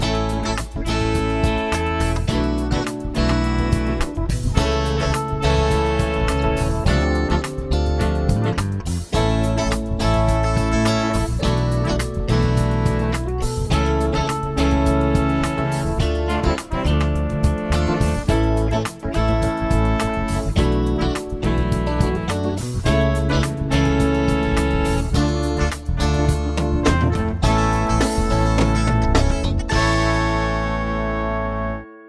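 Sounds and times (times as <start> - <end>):
chord progression with mixture: 0.0 - 32.0.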